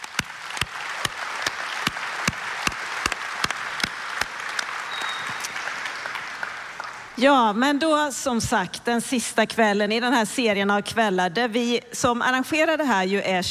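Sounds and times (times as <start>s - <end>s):
audience applause: 0.0s - 7.2s
speech: 7.2s - 13.4s.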